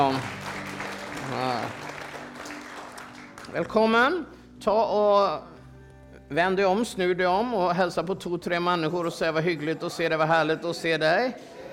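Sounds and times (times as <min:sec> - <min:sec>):
speech: 0:00.0 - 0:00.4, 0:01.2 - 0:01.8, 0:03.5 - 0:05.5, 0:06.3 - 0:11.6
church congregation applauding the worship team: 0:00.0 - 0:04.1.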